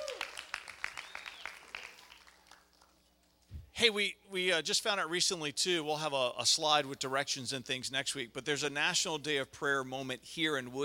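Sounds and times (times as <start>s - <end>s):
crowd clapping and cheering: 0.0s - 3.1s
speech: 3.8s - 10.8s.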